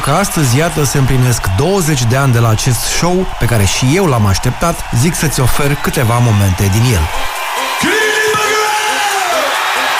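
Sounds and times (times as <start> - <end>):
speech: 0.0 - 7.9
stadium concert crowd cheering in Bucharest: 0.0 - 9.9.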